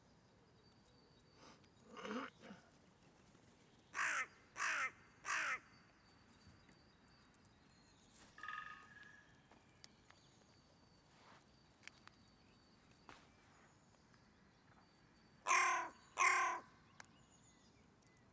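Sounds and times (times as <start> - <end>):
hooded crow Corvus cornix cornix calling: 4.0 - 5.7, 15.5 - 16.8.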